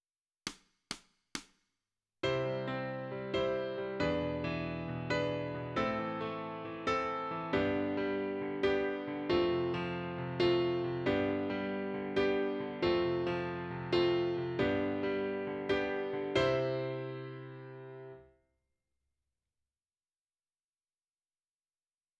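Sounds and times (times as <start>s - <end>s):
piano: 2.2s - 18.4s.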